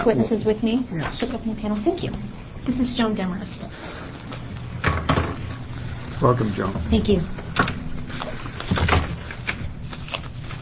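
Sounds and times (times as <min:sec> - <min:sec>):
speech: 0:00.0 - 0:04.1, 0:06.2 - 0:08.2
papers and bill files rustling during a committee hearing: 0:06.4 - 0:10.6.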